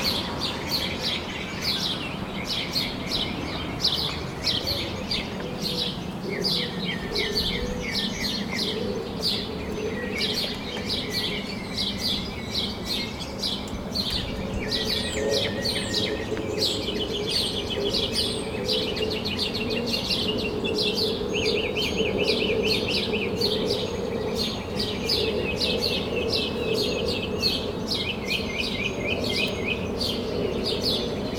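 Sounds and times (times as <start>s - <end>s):
birds chirping in chorus at sunrise: 0.0s - 31.3s.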